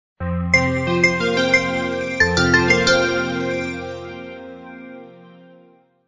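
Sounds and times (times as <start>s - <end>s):
bell: 0.6s - 4.6s.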